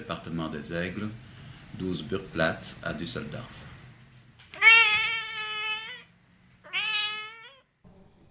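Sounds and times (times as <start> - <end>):
speech: 0.0 - 3.6
cat meowing: 4.5 - 7.8.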